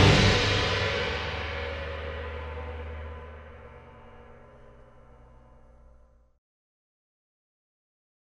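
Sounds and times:
taiko drums: 0.0 - 3.8.

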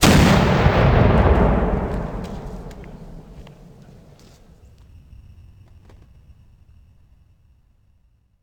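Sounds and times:
explosion: 0.0 - 4.5
gunshot: 0.0 - 4.6.

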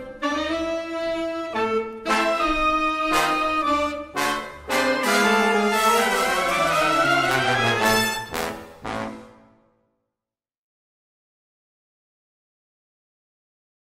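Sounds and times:
horns solo: 0.1 - 9.6.

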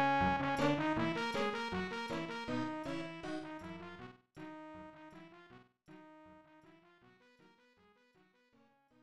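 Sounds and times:
casino win jingle: 0.2 - 3.8.

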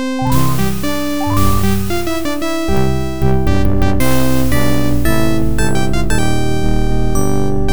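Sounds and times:
success jingle: 0.2 - 7.6.

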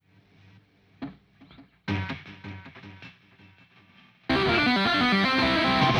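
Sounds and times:
downbeat guitar music: 4.3 - 5.9.

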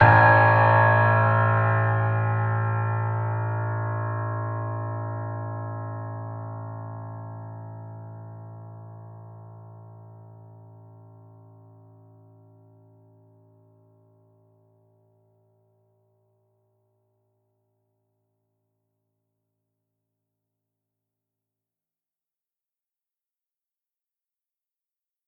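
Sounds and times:
piano theme: 0.0 - 11.5.

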